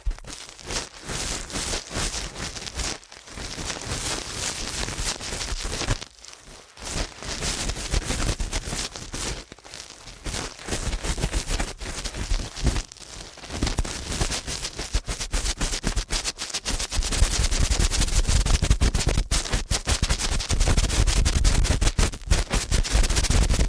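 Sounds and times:
fast ASMR ear cleaning crackling and scratching clicks: 0.0 - 23.6.

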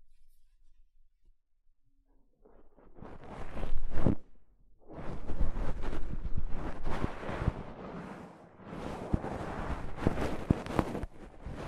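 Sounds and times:
soft fabric brushing against a microphone: 2.8 - 11.6.

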